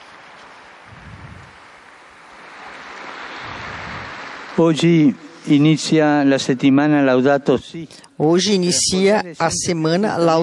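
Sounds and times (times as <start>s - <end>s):
large crowd applause: 1.5s - 6.0s
speech: 4.6s - 10.4s.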